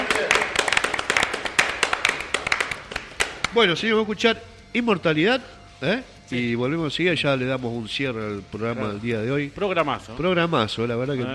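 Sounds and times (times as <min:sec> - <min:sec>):
small group clapping hands: 0:00.0 - 0:03.8
speech: 0:03.6 - 0:11.3.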